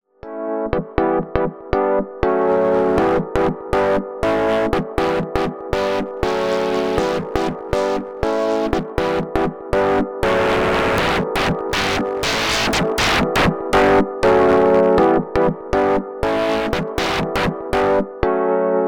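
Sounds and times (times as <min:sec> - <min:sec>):
AKAI MPC LIVE II wavefolder synth: 0:01.0 - 0:18.8.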